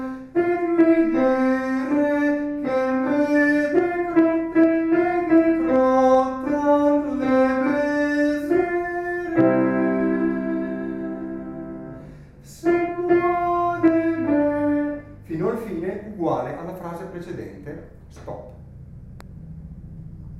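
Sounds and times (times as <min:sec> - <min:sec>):
contralto voices singing: 0:00.0 - 0:15.3.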